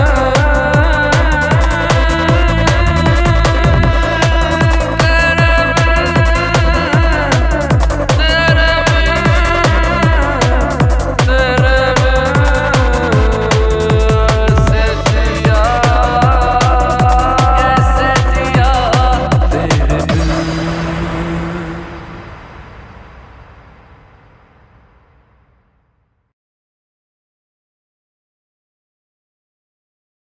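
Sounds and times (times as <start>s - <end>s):
speed metal music: 0.0s - 22.5s.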